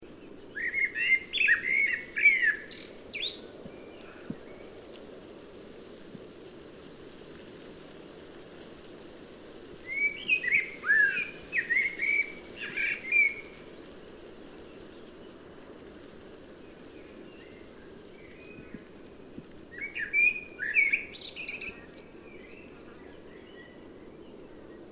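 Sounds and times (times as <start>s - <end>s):
faint hiss: 0.0s - 24.9s
common blackbird song: 0.1s - 4.8s, 9.9s - 13.6s, 16.8s - 24.9s.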